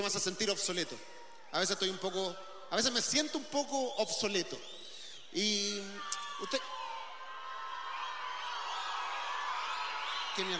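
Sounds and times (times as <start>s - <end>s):
speech: 0.0s - 6.8s, 10.4s - 10.5s
audience shouting and cheering: 5.8s - 10.5s.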